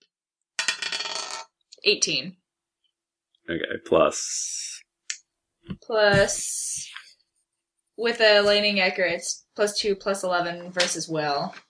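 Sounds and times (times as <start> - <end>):
dice clattering across a hard surface: 0.6 - 1.5
speech: 1.8 - 2.4, 3.5 - 4.8, 5.6 - 7.0, 8.0 - 11.6.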